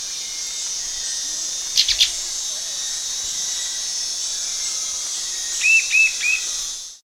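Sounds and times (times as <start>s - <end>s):
high hiss: 0.0s - 7.0s
bird call of brief flat whistled notes: 1.8s - 2.3s, 5.5s - 6.6s.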